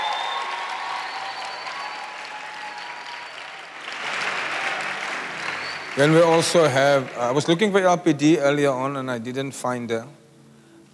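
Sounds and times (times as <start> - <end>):
conference audience applause: 0.0 - 7.9
speech: 6.0 - 10.2.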